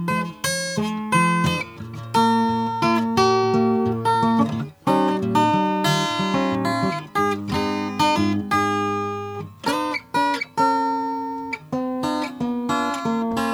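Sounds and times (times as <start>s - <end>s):
natural finish acoustic guitar: 0.0s - 13.5s.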